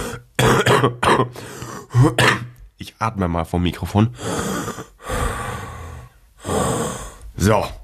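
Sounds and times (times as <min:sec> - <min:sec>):
heavy coughing: 0:00.0 - 0:02.6
speech: 0:00.5 - 0:04.9, 0:07.4 - 0:07.8.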